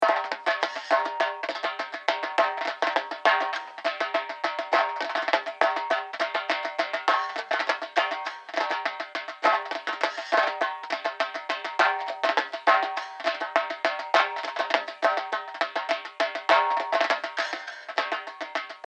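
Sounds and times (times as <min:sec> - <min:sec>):
Arabic percussion: 0:00.0 - 0:18.8.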